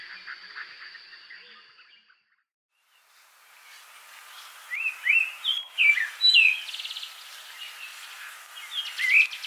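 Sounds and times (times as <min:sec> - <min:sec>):
thrush singing: 0:03.0 - 0:09.4.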